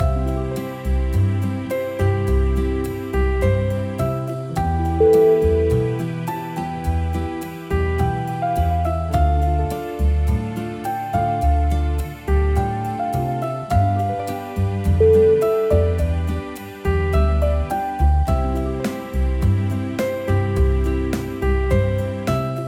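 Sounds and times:
magical bossa nova music: 0.0 - 22.6.

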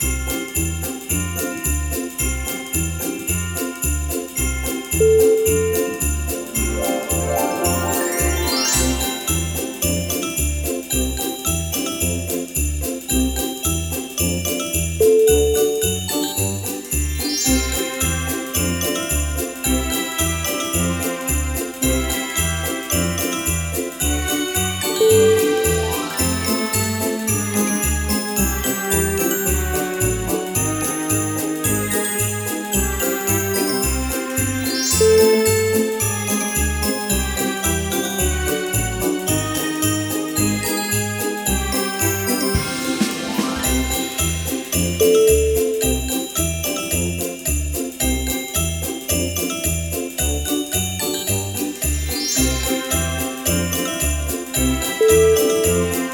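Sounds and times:
magical christmas tune: 0.0 - 56.1.

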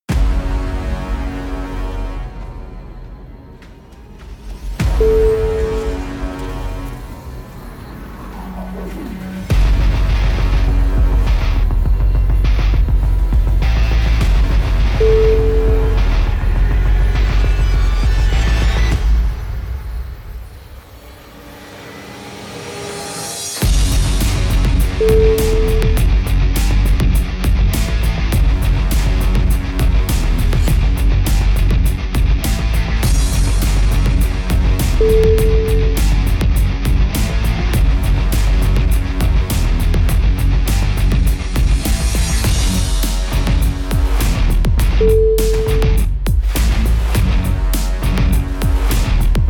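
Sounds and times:
industrial music: 0.0 - 49.4.

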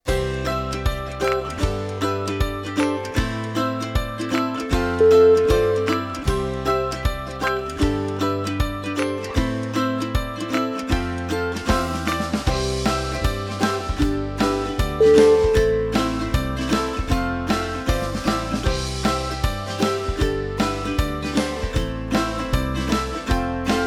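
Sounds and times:
happy ukulele music: 0.0 - 23.8.

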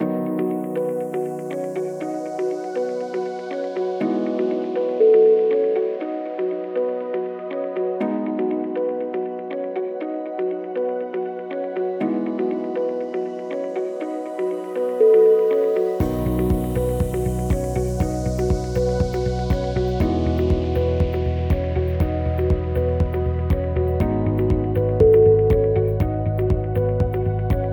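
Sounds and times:
inspirational ambient music: 0.0 - 27.7.

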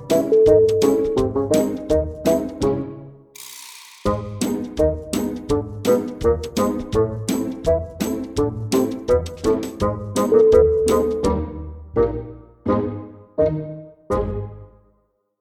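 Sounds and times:
comical bassoon playing: 0.1 - 2.9, 4.1 - 5.1, 5.9 - 14.8.

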